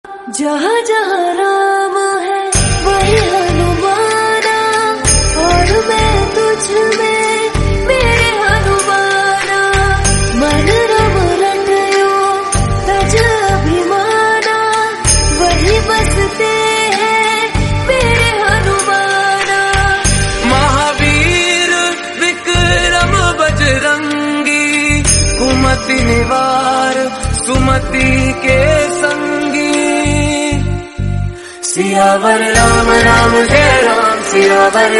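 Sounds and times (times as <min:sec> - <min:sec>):
Hindi devotional bhakti music: 0:00.0 - 0:34.9.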